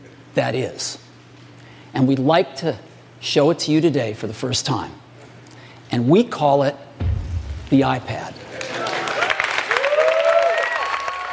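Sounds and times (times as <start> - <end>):
speech: 0.4 - 1.1, 1.9 - 5.0, 5.9 - 8.4
large audience clapping at product launch: 8.4 - 11.3
people whooping and shouting: 8.6 - 11.3.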